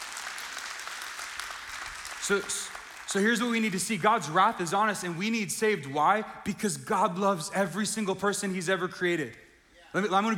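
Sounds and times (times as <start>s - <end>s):
congregation clapping during a church sermon: 0.0s - 4.9s
speech: 2.3s - 10.3s.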